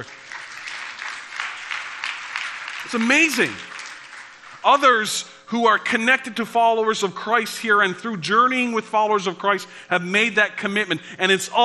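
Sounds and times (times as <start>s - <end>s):
speech: 0.0s - 0.2s, 2.8s - 3.7s, 4.6s - 11.6s
large crowd applauding: 0.0s - 4.9s.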